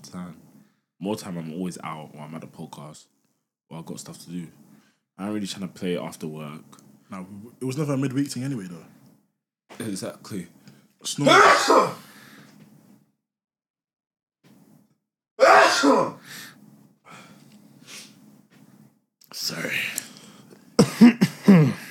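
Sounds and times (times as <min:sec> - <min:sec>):
speech: 0:00.0 - 0:00.4, 0:01.0 - 0:09.0, 0:09.8 - 0:12.0
coughing: 0:11.2 - 0:12.1, 0:15.4 - 0:16.2, 0:20.8 - 0:21.8.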